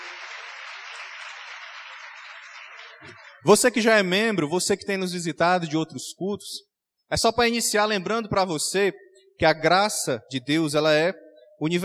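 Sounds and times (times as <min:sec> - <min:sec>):
audience applause: 0:00.0 - 0:03.4
speech: 0:03.0 - 0:11.8.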